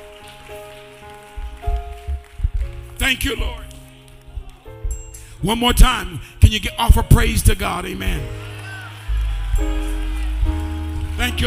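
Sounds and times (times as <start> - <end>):
people clapping hands: 0.0 - 5.2, 8.2 - 11.4
speech: 3.1 - 3.6, 5.4 - 8.4.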